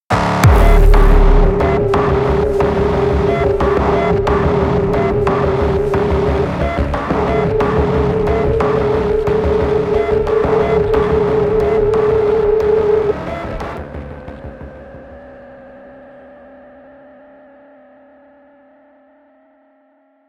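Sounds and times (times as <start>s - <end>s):
main ambience: 0.2s - 13.8s.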